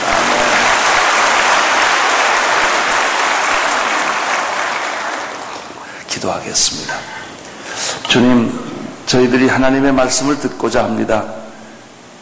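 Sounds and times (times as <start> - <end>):
audience applause: 0.0 - 5.8
speech: 6.3 - 7.2, 8.1 - 11.4.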